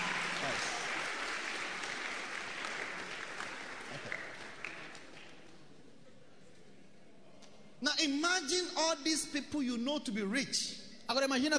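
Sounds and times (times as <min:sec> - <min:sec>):
audience clapping: 0:00.0 - 0:05.7
speech: 0:08.4 - 0:11.5.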